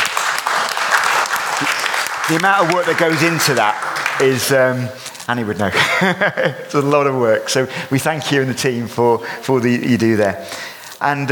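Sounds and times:
audience applause: 0:00.0 - 0:05.0
speech: 0:02.3 - 0:11.3
laughter: 0:05.5 - 0:08.0.

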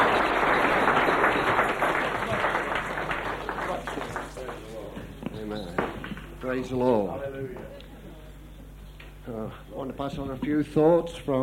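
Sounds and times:
audience clapping: 0:00.0 - 0:06.8
speech: 0:06.6 - 0:07.8, 0:09.3 - 0:11.4.

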